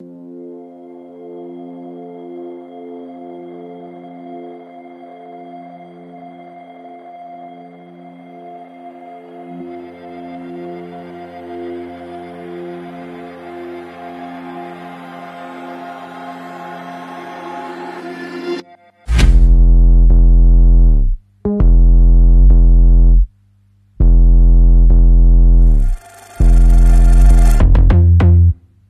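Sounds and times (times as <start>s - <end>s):
minimal music mix: 18.6s - 28.8s.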